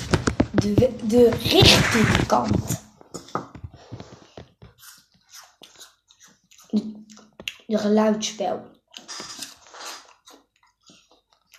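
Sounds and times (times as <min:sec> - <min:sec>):
speech: 0:00.6 - 0:02.8, 0:07.7 - 0:08.8
chewing an apple: 0:04.7 - 0:07.9, 0:08.7 - 0:11.5.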